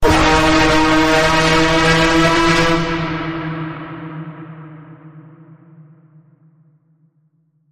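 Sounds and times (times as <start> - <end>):
full pitch bend note in D sharp: 0.0 - 4.0.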